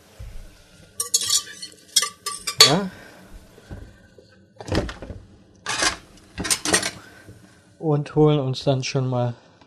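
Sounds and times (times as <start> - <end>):
metal whisk clinking as it is taken out in a kitchen: 1.0 - 2.8
speech: 2.7 - 3.0, 7.9 - 9.4.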